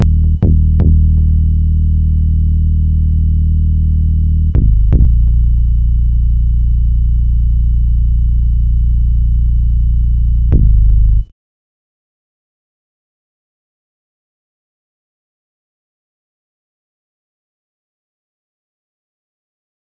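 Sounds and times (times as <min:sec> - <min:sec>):
bass: 0:00.0 - 0:11.3.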